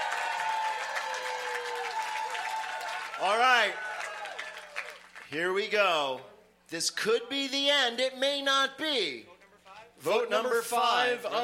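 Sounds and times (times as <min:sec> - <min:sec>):
audience applause: 0:00.0 - 0:05.3
speech: 0:03.2 - 0:03.9, 0:05.3 - 0:09.3, 0:10.0 - 0:11.4.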